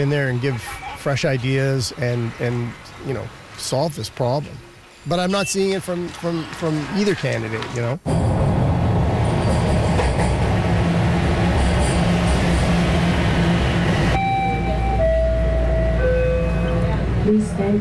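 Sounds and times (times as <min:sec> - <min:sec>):
speech: 0:00.0 - 0:08.2
subway train roaring at a transit station: 0:08.1 - 0:17.7
thin high electronic tones: 0:13.8 - 0:17.4.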